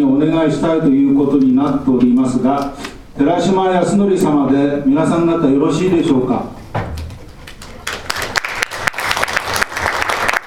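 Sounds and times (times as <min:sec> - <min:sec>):
speech: 0:00.0 - 0:06.9
applause signalling approval: 0:07.4 - 0:10.4.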